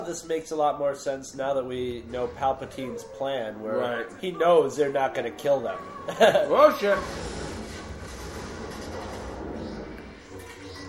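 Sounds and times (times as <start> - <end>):
speech: 0.1 - 7.4
laughter: 6.0 - 6.9
movie explosion: 6.8 - 10.4.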